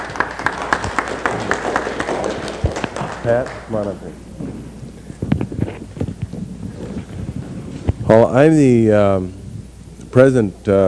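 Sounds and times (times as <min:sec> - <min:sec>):
audience applause: 0:00.0 - 0:04.0
speech: 0:03.2 - 0:04.4, 0:08.1 - 0:09.4, 0:10.1 - 0:10.8.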